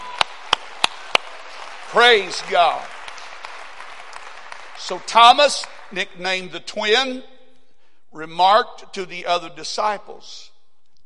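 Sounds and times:
audience clapping hands: 0.0s - 6.2s
speech: 1.9s - 2.9s, 4.9s - 7.3s, 8.1s - 10.5s.

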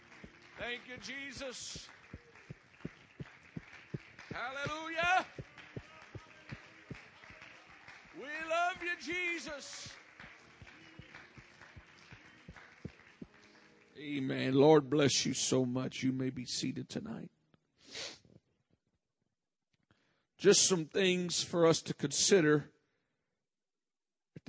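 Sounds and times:
audience clapping hands: 0.0s - 14.7s
speech: 0.6s - 2.0s, 4.4s - 5.4s, 8.2s - 10.0s, 14.0s - 17.4s, 20.4s - 22.8s.

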